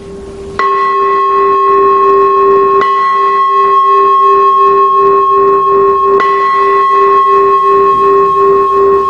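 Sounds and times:
Buddhist temple bell struck for chanting: 0:00.6 - 0:09.0.

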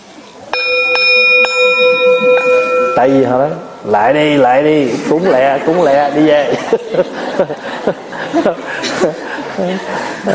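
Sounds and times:
temple bell struck with a mallet: 0:00.5 - 0:04.5
speech: 0:03.0 - 0:10.3
laughter: 0:04.8 - 0:10.3.

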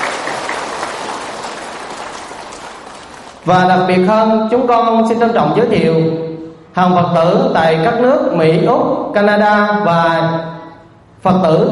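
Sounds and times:
large audience applause: 0:00.0 - 0:03.5
speech: 0:03.4 - 0:06.2, 0:06.8 - 0:10.5, 0:11.2 - 0:11.7.

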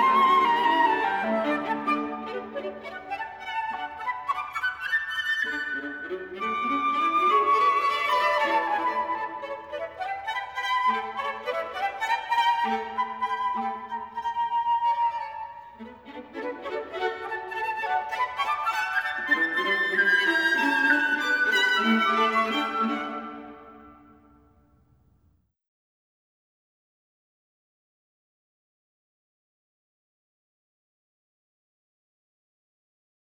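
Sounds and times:
flute, violin and viola playing a serenade: 0:00.0 - 0:24.2.

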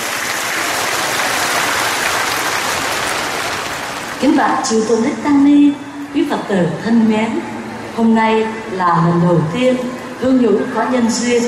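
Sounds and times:
crowd applauding: 0:00.0 - 0:04.3
speech: 0:04.2 - 0:11.4.

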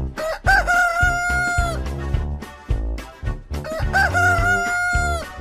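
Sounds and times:
rooster crowing: 0:00.2 - 0:01.8, 0:03.7 - 0:05.3.

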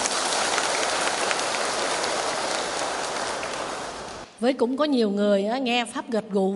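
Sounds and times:
crowd applause: 0:00.0 - 0:04.3
speech: 0:04.4 - 0:06.5.

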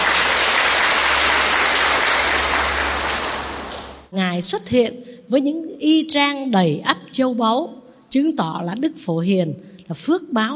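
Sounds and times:
audience applause: 0:00.0 - 0:04.1
speech: 0:04.4 - 0:10.5.

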